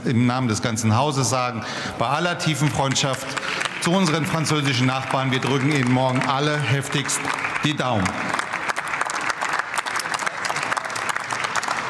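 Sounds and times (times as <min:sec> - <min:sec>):
speech: 0:00.0 - 0:08.3
applause in parliament chamber: 0:02.5 - 0:11.8.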